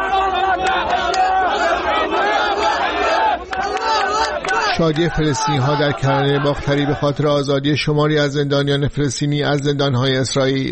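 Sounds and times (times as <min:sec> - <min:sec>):
crowd of Israelis cheering and chanting the release of hostages: 0:00.0 - 0:07.4
speech: 0:04.8 - 0:10.7.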